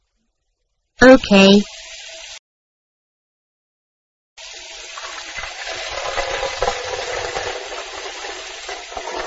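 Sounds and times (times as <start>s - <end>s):
speech: 1.1s - 1.8s
tap water running into a pan: 1.6s - 2.4s, 4.4s - 9.2s.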